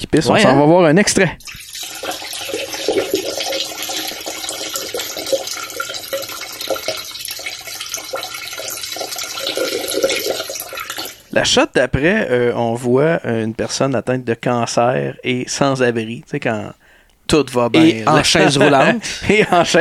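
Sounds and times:
speech: 0.1 - 1.6, 11.4 - 19.7
liquid pouring into glasses: 1.4 - 11.3.

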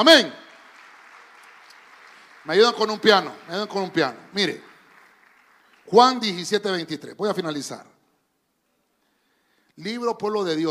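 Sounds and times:
speech: 0.0 - 0.4, 2.4 - 4.7, 5.9 - 7.9, 9.8 - 10.6
audience clapping: 0.0 - 6.9.

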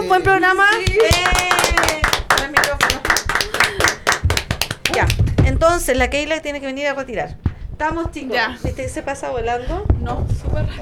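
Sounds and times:
speech: 0.1 - 1.5, 5.0 - 10.8
studio clapping: 0.3 - 5.8.

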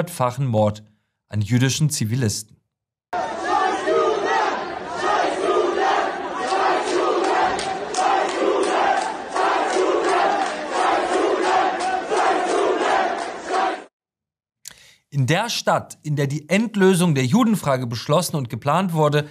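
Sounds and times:
speech: 0.0 - 2.6, 15.2 - 19.2
large crowd cheering and shouting in the street: 3.2 - 13.9.

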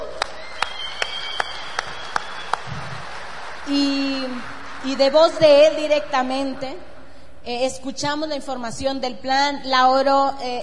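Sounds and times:
audience applause: 0.0 - 6.7
speech: 3.7 - 10.6.

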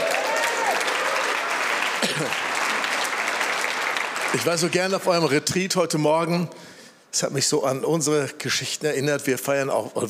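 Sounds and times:
audience applause: 0.0 - 5.4
speech: 2.2 - 2.6, 4.3 - 10.0.

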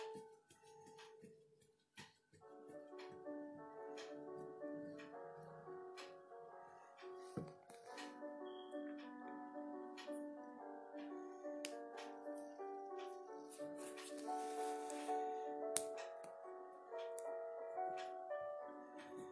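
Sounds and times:
soft K-pop piano melody: 0.0 - 19.3
pencil strokes: 13.8 - 15.3.

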